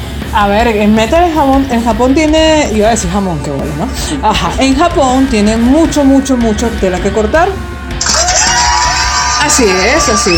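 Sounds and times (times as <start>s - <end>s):
speech: 0.4s - 7.7s, 9.4s - 10.3s
crowd cheering and shouting: 8.0s - 10.3s
high whoops: 8.0s - 10.3s.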